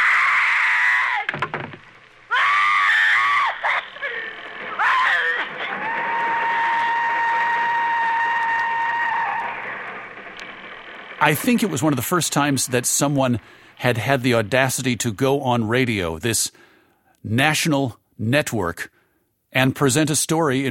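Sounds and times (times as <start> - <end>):
woman screaming: 0.0 - 1.3, 2.3 - 9.4
speech: 11.2 - 16.6, 17.2 - 18.9, 19.6 - 20.6.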